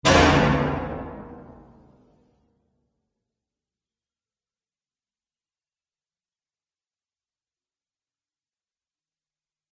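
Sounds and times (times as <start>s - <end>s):
bomb explosion bang sound effect: 0.0s - 1.9s.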